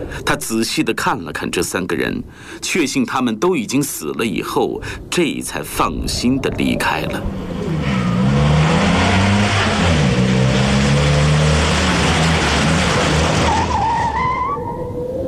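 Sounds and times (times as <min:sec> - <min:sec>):
speech: 0:00.1 - 0:07.5
ambulance engine roaring while speeding: 0:06.5 - 0:15.0
ambulance tires squealing while braking hard: 0:07.2 - 0:15.0.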